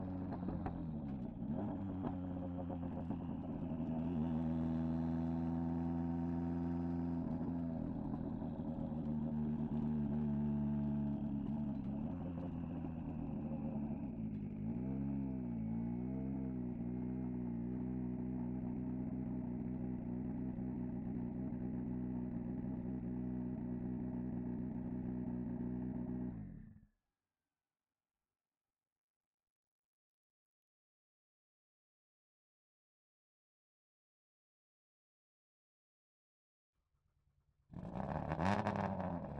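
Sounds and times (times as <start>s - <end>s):
distant Ford Fiesta WRC2 rally car exhaust driving: 0.0s - 26.8s, 37.8s - 39.3s.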